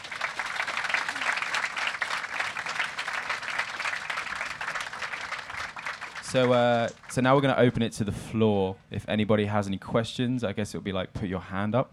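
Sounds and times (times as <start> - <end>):
audience applause: 0.0 - 7.2
speech: 6.3 - 11.9.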